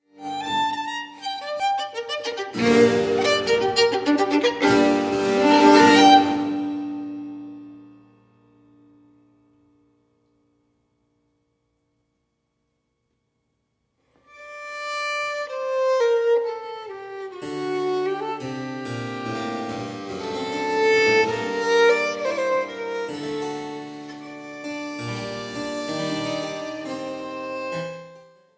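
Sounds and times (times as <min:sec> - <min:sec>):
violin: 0:00.0 - 0:07.9, 0:14.2 - 0:28.5.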